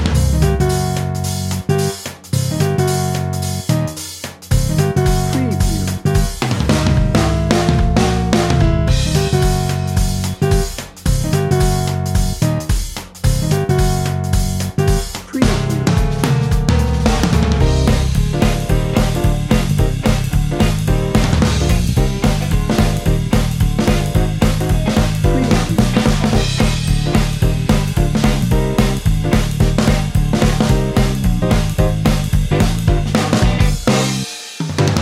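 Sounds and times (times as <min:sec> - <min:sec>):
jitterbug jive music bed: 0:00.2 - 0:12.7, 0:13.3 - 0:34.9.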